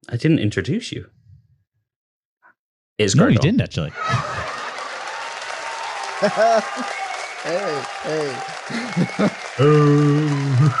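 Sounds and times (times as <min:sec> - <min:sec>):
speech: 0:00.0 - 0:01.2, 0:03.0 - 0:04.4, 0:06.2 - 0:10.7
laughter: 0:03.2 - 0:10.7
canned applause sound effect: 0:04.0 - 0:10.7.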